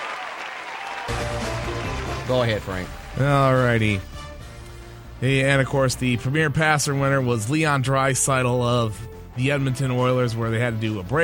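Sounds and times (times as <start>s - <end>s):
group clapping: 0.0s - 4.0s
speech: 2.3s - 4.1s, 5.2s - 11.2s.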